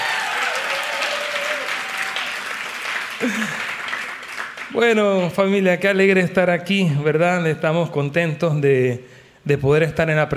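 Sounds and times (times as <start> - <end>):
audience applause: 0.0 - 5.0
speech: 3.2 - 3.6, 4.7 - 10.3.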